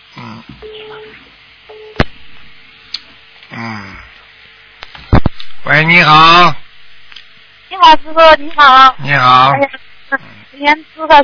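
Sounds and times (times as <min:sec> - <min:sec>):
unanswered telephone call tones: 0:00.6 - 0:02.0
speech: 0:05.8 - 0:06.6, 0:07.8 - 0:11.2.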